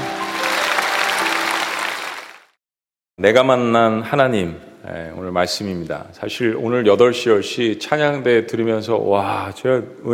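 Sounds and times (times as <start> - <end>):
audience applause: 0.0 - 2.6
speech: 3.2 - 10.1.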